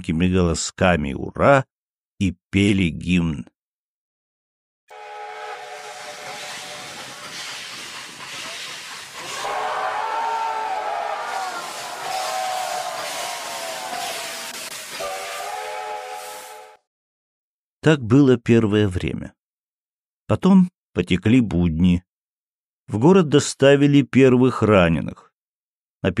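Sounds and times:
speech: 0.0 - 3.5, 17.8 - 19.4, 20.3 - 22.1, 22.9 - 25.3
steam train whistle: 4.9 - 16.9.

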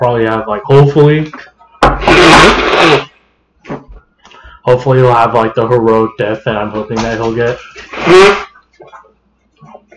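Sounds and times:
speech: 0.0 - 1.4, 2.0 - 3.1, 4.7 - 9.0
nose blowing: 1.8 - 3.2, 7.7 - 8.6.

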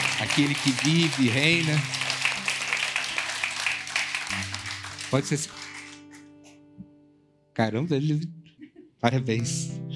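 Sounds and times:
audience clapping hands: 0.0 - 6.4
speech: 0.4 - 2.0, 5.1 - 5.6, 7.6 - 8.4, 9.0 - 9.8.

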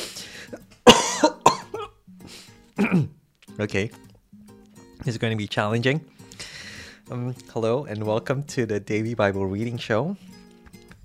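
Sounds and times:
faint breathing: 0.0 - 0.6, 2.2 - 2.7, 6.1 - 7.1
hiccups: 2.8 - 3.2
speech: 2.9 - 4.0, 5.0 - 6.1, 7.1 - 10.3.

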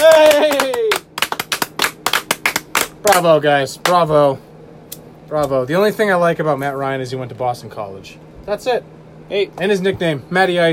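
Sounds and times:
round of applause: 0.0 - 3.2
speech: 3.0 - 4.5, 5.3 - 10.7.

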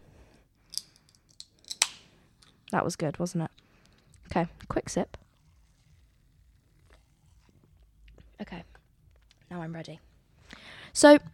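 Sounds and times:
can of vanilla Coke being cracked open: 0.7 - 2.7
speech: 2.7 - 3.6, 4.4 - 5.2, 9.6 - 10.1, 11.0 - 11.3.

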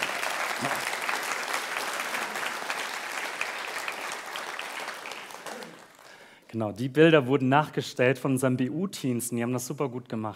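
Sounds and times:
audience applause: 0.0 - 6.4
speech: 0.6 - 0.9, 6.5 - 10.3.

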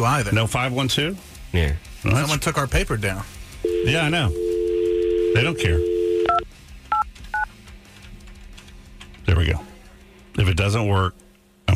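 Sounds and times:
speech: 0.0 - 4.4, 5.3 - 5.9, 9.3 - 9.7, 10.4 - 11.2
low hum: 0.0 - 11.7
touch-tone telephone dialing beeps: 3.7 - 7.5.

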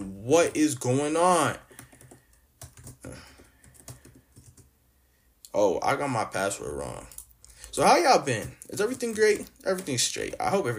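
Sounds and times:
speech: 0.3 - 1.6, 5.5 - 7.2, 7.8 - 10.7
typing on a laptop keyboard for Google searches: 1.6 - 4.7, 7.0 - 10.5.

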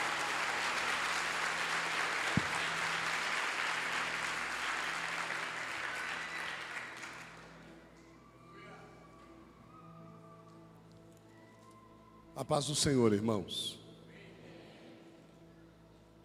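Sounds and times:
audience applauding: 0.0 - 7.7
speech: 12.4 - 13.8.

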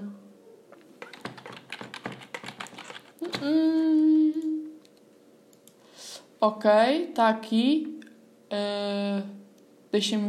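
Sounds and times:
typing on a computer keyboard: 1.0 - 3.5
speech: 6.4 - 7.9, 8.5 - 9.4, 9.9 - 10.2.

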